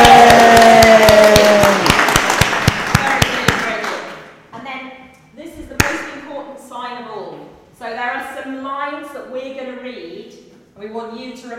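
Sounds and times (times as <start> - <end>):
audience cheering on cue for a presenter: 0.0 - 3.0
audience clapping on cue for a presenter: 0.0 - 4.2.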